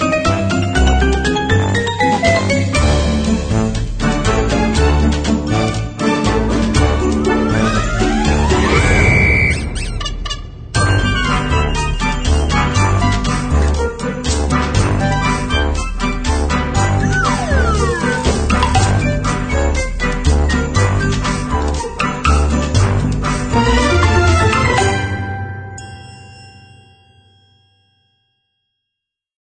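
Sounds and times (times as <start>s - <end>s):
playful brave Christmas music score: 0.0s - 8.9s, 9.8s - 28.3s
ornament and toy sound effects: 16.9s - 19.3s.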